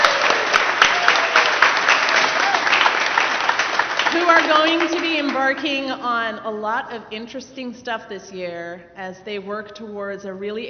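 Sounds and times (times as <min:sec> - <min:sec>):
church congregation applause: 0:00.0 - 0:05.9
speech: 0:04.5 - 0:10.6.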